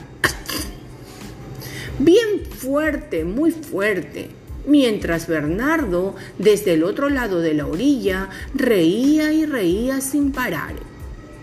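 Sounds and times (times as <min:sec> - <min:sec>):
person imitating a sneeze: 0:00.2 - 0:00.9
speech: 0:02.0 - 0:10.9.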